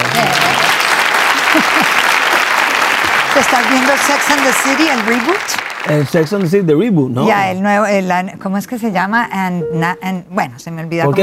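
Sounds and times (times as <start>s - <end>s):
applause: 0.0s - 6.6s
laughter: 1.2s - 2.8s
speech: 3.5s - 11.2s.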